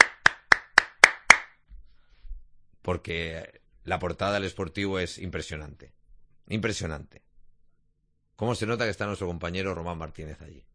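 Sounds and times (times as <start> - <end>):
hands clapping: 0.0 - 1.6
speech: 2.9 - 7.2, 8.4 - 10.7.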